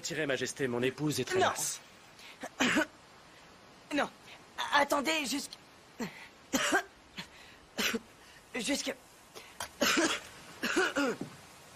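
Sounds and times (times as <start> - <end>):
speech: 0.0 - 3.0, 3.9 - 6.9, 8.6 - 9.0, 10.0 - 11.3
boy choking and coughing in Joffrey's death scene from Game of Thrones: 2.4 - 3.0, 6.0 - 8.1, 9.7 - 11.3.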